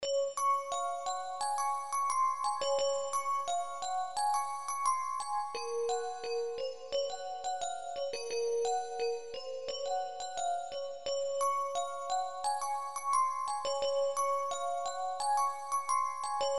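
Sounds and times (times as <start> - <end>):
night-time little bells: 0.0 - 16.5.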